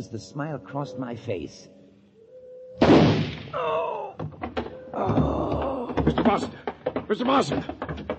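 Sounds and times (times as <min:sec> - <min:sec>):
speech: 0:00.0 - 0:01.8, 0:03.5 - 0:04.0, 0:05.0 - 0:05.3, 0:06.1 - 0:07.8
gunshot in a suspense radio drama: 0:02.8 - 0:03.6
tonal and knocking sounds: 0:04.2 - 0:08.1.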